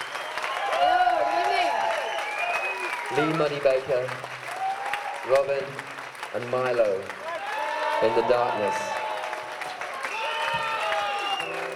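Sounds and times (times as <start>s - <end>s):
audience applause at a comedy show: 0.0s - 11.7s
speech: 3.1s - 4.4s, 5.2s - 7.2s, 8.0s - 8.9s.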